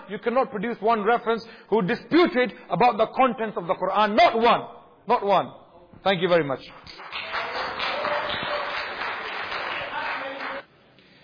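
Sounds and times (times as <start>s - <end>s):
speech: 0.1s - 7.3s
audience applause at a religious lecture: 6.9s - 10.6s.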